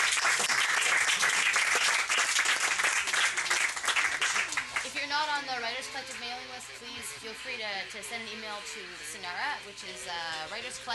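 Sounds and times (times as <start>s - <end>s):
audience applause: 0.0s - 4.9s
speech: 5.5s - 10.9s.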